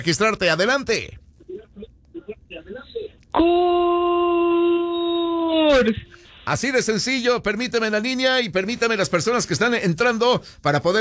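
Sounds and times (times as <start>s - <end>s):
speech: 0.0s - 1.2s, 3.4s - 4.2s, 5.5s - 10.9s
caller's Mexican grito shout: 3.3s - 6.2s.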